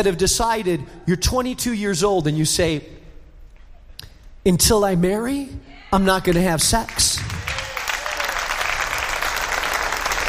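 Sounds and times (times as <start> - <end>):
speech: 0.0 - 3.0, 4.4 - 7.3
audience clapping: 6.3 - 10.2.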